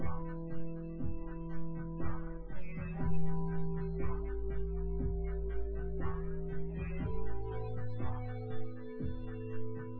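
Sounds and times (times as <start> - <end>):
drums: 0.0 - 9.9.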